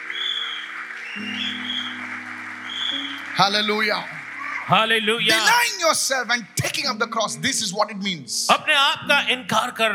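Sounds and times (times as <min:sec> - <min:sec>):
audience clapping: 0:00.0 - 0:07.0
sustained keyboard chords: 0:00.0 - 0:09.9
speech: 0:01.2 - 0:01.4, 0:03.4 - 0:09.9.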